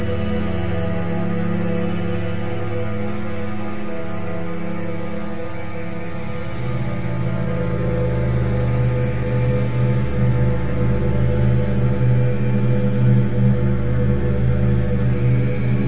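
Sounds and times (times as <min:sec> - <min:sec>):
ambient strings: 0:00.0 - 0:15.8.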